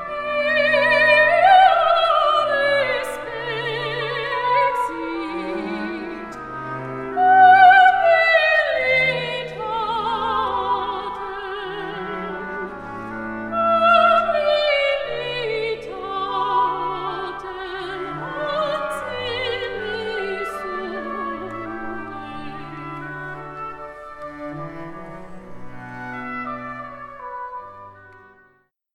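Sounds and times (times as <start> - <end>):
opera singer singing a Baroque piece: 0.0 - 6.5, 7.1 - 12.8, 13.4 - 23.3.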